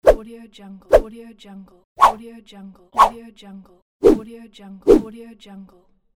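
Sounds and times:
whooshes: 2.0 - 2.2, 3.0 - 3.2.

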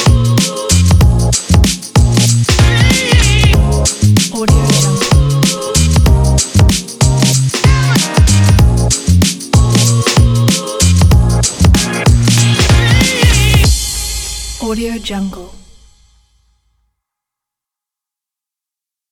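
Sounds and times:
summer hip-hop music: 0.0 - 14.9.

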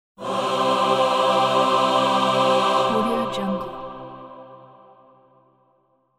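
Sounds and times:
heavenly choir singing ah: 0.2 - 5.2.

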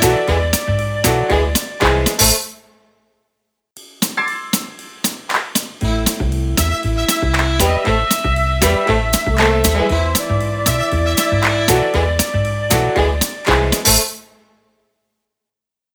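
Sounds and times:
uptempo jazzy groove: 0.0 - 2.6, 5.8 - 14.2.

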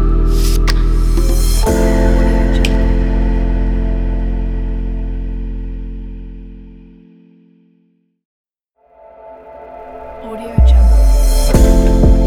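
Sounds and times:
sexy erotic hip hop lounge music: 0.0 - 5.5, 10.2 - 12.2.

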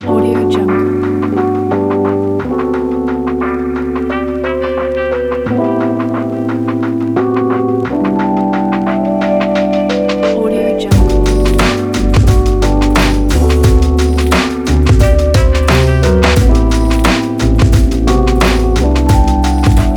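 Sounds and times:
lofi hip hop music: 0.0 - 19.9.

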